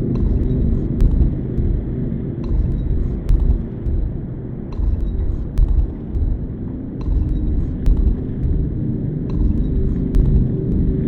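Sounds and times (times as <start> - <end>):
chamber music loop: 0.2 - 10.9.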